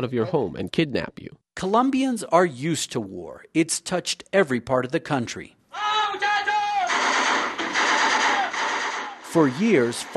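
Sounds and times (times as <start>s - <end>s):
speech: 0.0s - 5.6s, 9.3s - 10.1s
gunfire from a FARC guerrilla assault on Mitu, Colombia: 6.8s - 10.1s.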